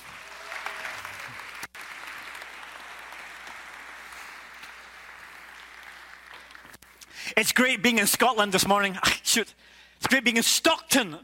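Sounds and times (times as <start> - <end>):
audience applause: 0.0 - 6.8
speech: 7.4 - 11.2.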